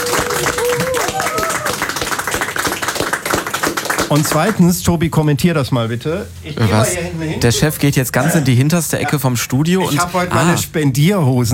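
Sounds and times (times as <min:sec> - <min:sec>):
whoops and cheering voices: 0:00.0 - 0:02.0
applause: 0:00.0 - 0:04.7
speech: 0:04.1 - 0:11.5.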